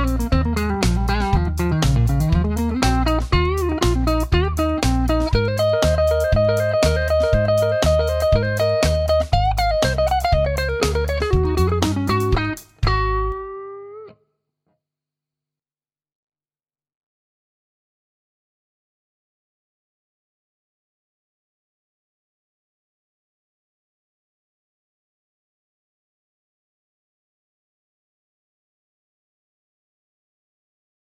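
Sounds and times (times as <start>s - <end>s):
clean Tele electric guitar on neck pickup: 0.0s - 14.2s.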